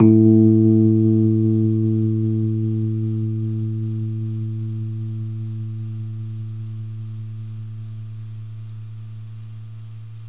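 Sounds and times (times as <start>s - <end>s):
Rhodes electric piano: 0.0s - 6.6s.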